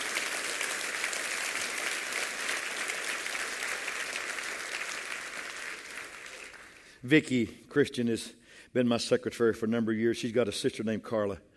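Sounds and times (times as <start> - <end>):
crowd applause: 0.0 - 7.0
speech: 7.0 - 11.5.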